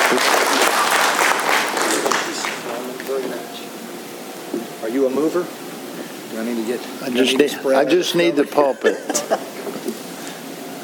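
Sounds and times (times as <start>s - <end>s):
audience applause: 0.0s - 2.8s
speech: 5.1s - 5.6s, 6.4s - 9.5s
laughter: 8.4s - 9.8s.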